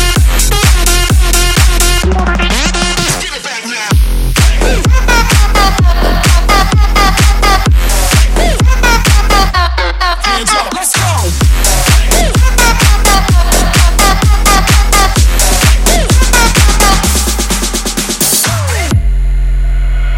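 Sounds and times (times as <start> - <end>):
clap: 0.0 - 2.0, 4.4 - 8.4, 9.0 - 9.5, 10.5 - 18.9
bouncing bass: 0.0 - 20.1.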